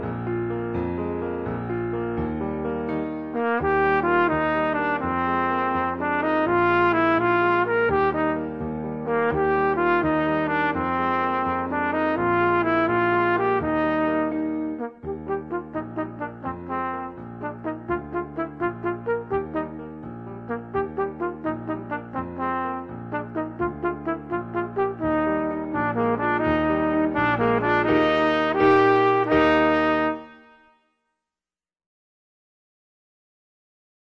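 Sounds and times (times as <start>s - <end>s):
musical accompaniment: 0.0s - 30.9s
trumpet: 3.3s - 31.0s.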